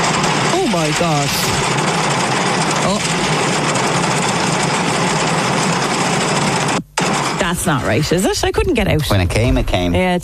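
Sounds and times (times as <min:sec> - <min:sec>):
car engine running: 0:00.0 - 0:10.0
speech: 0:00.8 - 0:01.9, 0:07.6 - 0:10.2.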